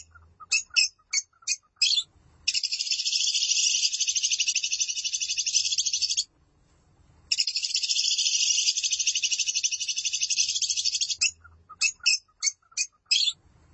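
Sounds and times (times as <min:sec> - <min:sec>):
lovebird harsh rapid chatter: 0:00.0 - 0:06.3, 0:07.3 - 0:13.4.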